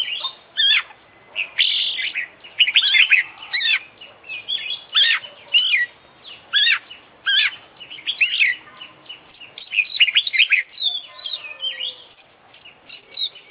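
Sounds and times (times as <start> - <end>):
oriental magpie-robin singing: 0.0 - 13.4.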